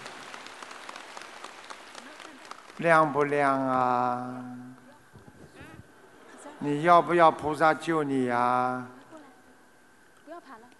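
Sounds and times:
applause: 0:00.0 - 0:04.2
speech: 0:02.8 - 0:04.7, 0:06.6 - 0:09.0.

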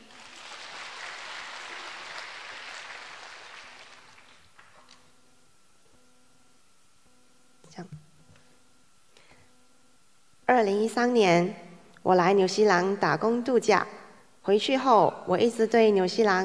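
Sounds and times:
audience applause: 0:00.0 - 0:04.9
speech: 0:10.6 - 0:16.4.

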